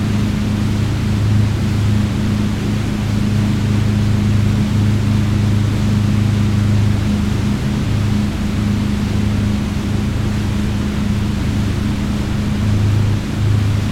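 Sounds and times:
boats at a bridge: 0:00.0 - 0:13.9.

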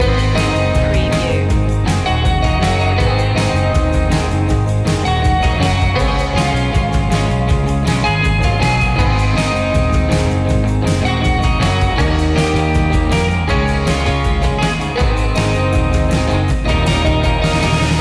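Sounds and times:
surf music loop: 0:00.0 - 0:17.9.

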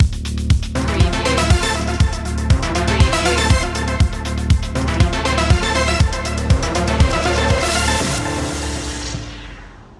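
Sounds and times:
arpeggio stinger: 0:00.8 - 0:09.7.

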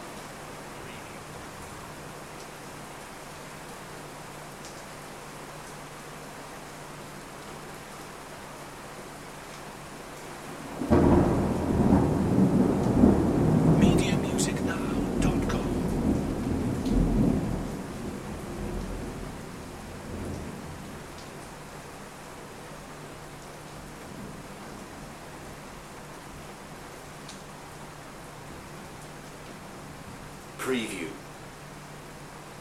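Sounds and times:
rain: 0:00.0 - 0:32.5
thunder: 0:10.8 - 0:17.8.

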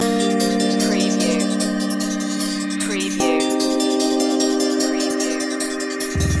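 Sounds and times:
music loop: 0:00.0 - 0:06.3.

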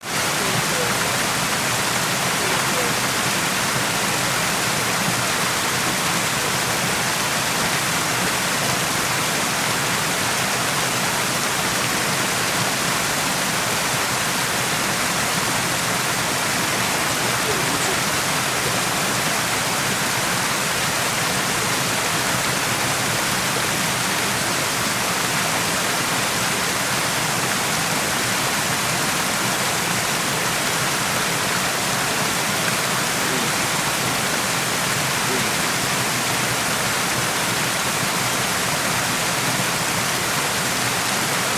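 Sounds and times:
mountain stream rushing: 0:00.0 - 0:41.5.

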